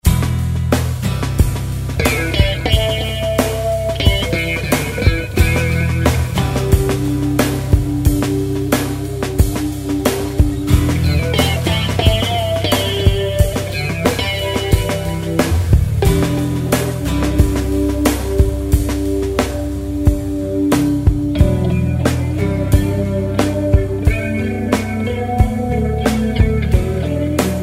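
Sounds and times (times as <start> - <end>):
plastic guitar: 0.0 - 27.6.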